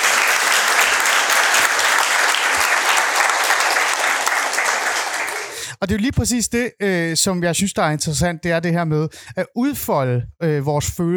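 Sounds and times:
audience applause: 0:00.0 - 0:05.7
speech: 0:05.8 - 0:11.1.

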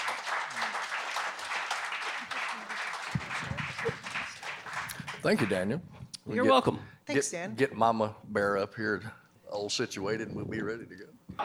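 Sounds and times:
audience applause at a mandolin camp: 0:00.0 - 0:05.7
speech: 0:05.2 - 0:11.4.

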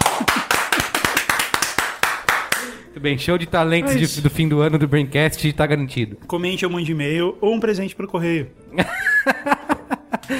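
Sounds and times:
crisp sharp hand claps applauding a performance: 0:00.0 - 0:02.8
speech: 0:03.0 - 0:09.6
laughter: 0:08.8 - 0:10.3.

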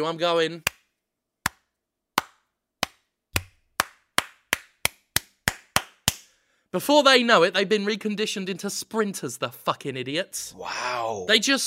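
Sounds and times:
speech: 0:00.0 - 0:00.8, 0:06.7 - 0:11.6
slow hand clap: 0:01.4 - 0:06.3.

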